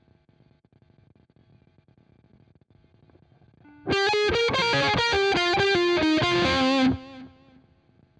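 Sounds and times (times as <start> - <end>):
guitar: 3.7 - 7.6.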